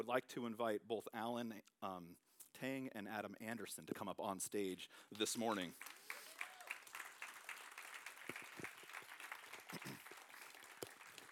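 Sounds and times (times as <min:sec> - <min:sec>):
speech: 0:00.0 - 0:06.2
audience clapping: 0:05.1 - 0:11.3.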